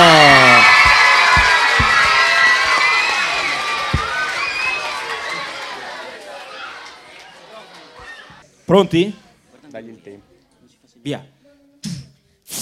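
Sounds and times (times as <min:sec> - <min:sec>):
children applauding: 0:00.0 - 0:08.4
speech: 0:08.7 - 0:10.2, 0:11.0 - 0:12.5.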